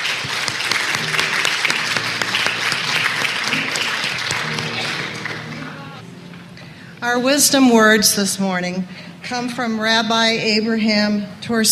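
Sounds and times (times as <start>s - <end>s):
applause from audience: 0.0s - 6.0s
speech: 7.1s - 11.7s.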